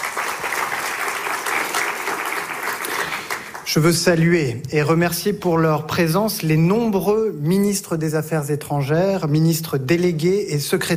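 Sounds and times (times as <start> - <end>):
audience applause: 0.0 - 3.8
speech: 3.7 - 10.9.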